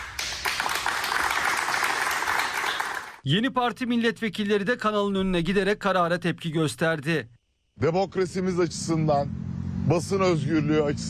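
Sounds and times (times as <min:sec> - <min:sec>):
studio staff applauding in protest: 0:00.0 - 0:03.2
speech: 0:03.2 - 0:11.0.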